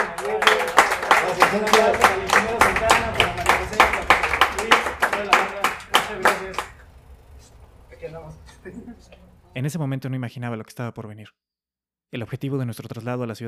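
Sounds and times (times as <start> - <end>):
audience applause: 0.0 - 7.4
speech: 1.5 - 2.1, 8.6 - 11.4, 12.1 - 13.4.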